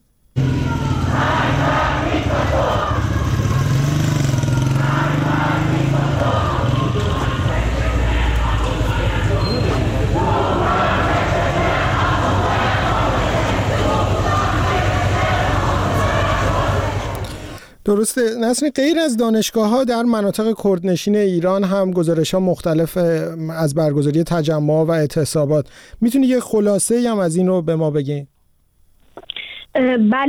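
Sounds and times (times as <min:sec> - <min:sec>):
large crowd of protesting students chanting slogans in unison: 0:00.4 - 0:17.6
constant rumble of noise: 0:00.4 - 0:17.8
speech: 0:17.9 - 0:28.3, 0:29.2 - 0:30.2.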